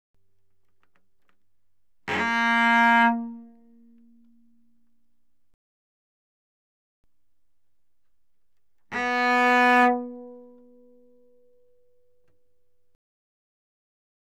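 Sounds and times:
cello bowed fortissimo on the D string: 0.6 - 5.3, 7.8 - 12.4.

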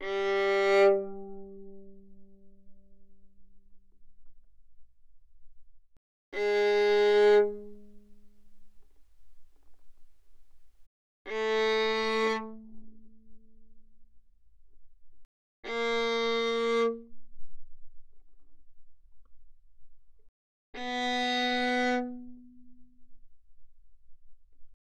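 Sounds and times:
violin bowed fortissimo on the G string: 0.0 - 2.6, 6.4 - 8.8, 11.3 - 13.1, 15.6 - 17.1, 20.8 - 22.7.

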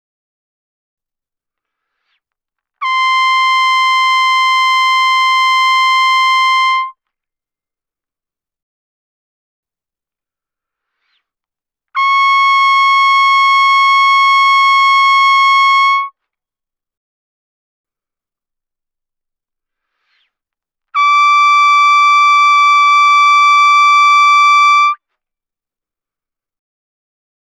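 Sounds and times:
trumpet notes C6 D6 without vibrato mezzo forte: 2.8 - 7.0, 12.0 - 16.1, 21.0 - 25.0.

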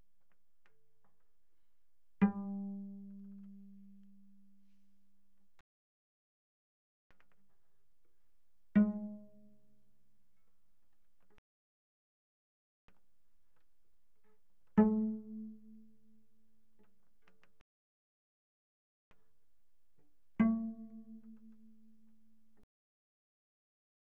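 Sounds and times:
cello pizzicato on G string mezzo-forte: 2.0 - 5.0, 8.6 - 9.9, 14.2 - 17.4, 19.9 - 22.6.

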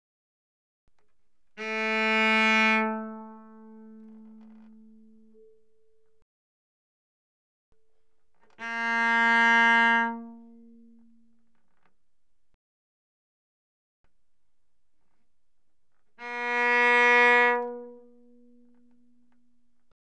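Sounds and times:
cello bowed arco on the A string: 1.4 - 6.1, 7.8 - 12.4, 15.0 - 19.9.

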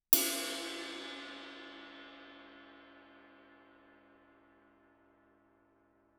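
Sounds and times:
suspended cymbal crash struck with stick fortissimo: 0.2 - 3.4.

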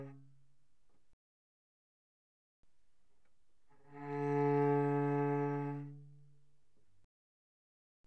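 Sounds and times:
cello played arco pianissimo on the C string: 0.0 - 0.4, 3.7 - 6.4.

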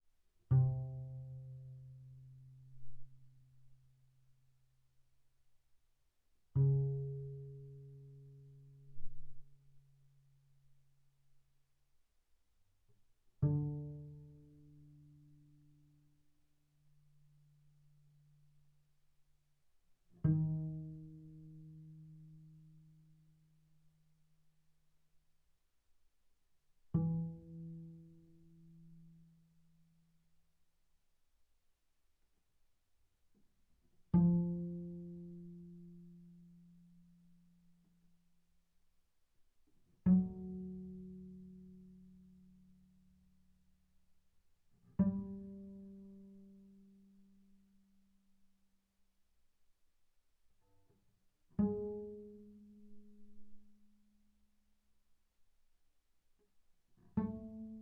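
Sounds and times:
double bass pizzicato on G string: 0.4 - 3.8, 6.5 - 10.0, 13.4 - 16.0, 20.2 - 23.8, 26.9 - 29.9, 34.1 - 37.8, 39.9 - 43.2, 44.9 - 47.5, 51.6 - 54.0, 57.1 - 57.8.

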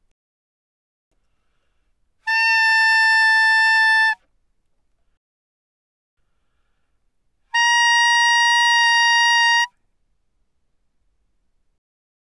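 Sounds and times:
bass clarinet playing fortissimo: 2.3 - 4.2, 7.6 - 9.7.

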